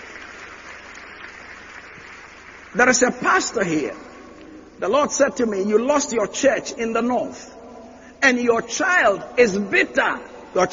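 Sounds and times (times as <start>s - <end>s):
church congregation clapping as a clap offering: 0.0s - 4.5s
speech: 2.8s - 4.1s, 4.8s - 7.6s, 8.2s - 10.7s.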